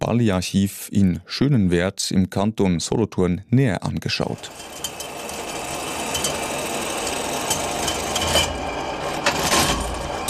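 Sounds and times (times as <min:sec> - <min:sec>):
speech: 0:00.1 - 0:04.9
125-year-old machine from the USA measuring leather area whirring: 0:04.3 - 0:10.2.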